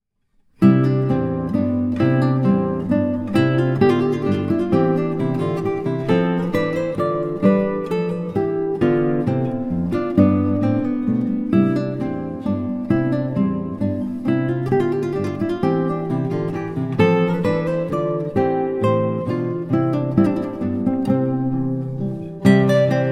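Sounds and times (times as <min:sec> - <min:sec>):
minuet with trios: 0:00.6 - 0:23.1.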